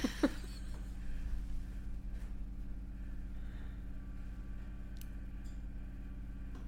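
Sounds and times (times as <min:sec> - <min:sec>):
laughter: 0:00.0 - 0:00.8
washing machine running in a basement: 0:00.0 - 0:06.6
click: 0:04.9 - 0:05.6.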